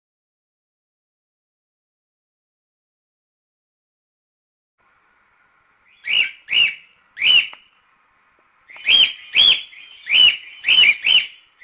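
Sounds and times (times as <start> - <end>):
lutino cockatiel singing scratchy warble: 5.9 - 7.7, 8.7 - 11.6.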